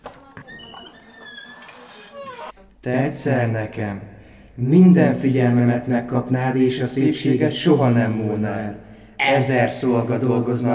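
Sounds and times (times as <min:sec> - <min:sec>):
door slowly opening, creaking: 0:00.0 - 0:02.6
speech: 0:02.8 - 0:10.7.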